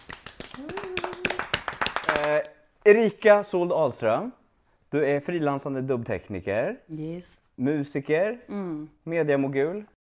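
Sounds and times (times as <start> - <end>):
hand clapping from a few people: 0.0 - 2.5
speech: 2.2 - 9.9.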